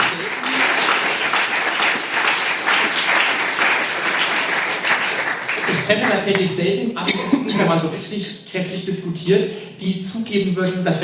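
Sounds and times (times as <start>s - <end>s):
audience applause: 0.0s - 6.4s
speech: 5.9s - 11.0s.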